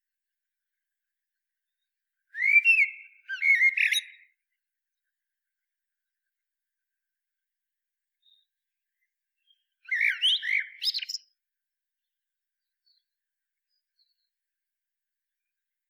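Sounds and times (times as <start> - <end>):
common blackbird singing: 2.4 - 4.3, 9.4 - 11.3.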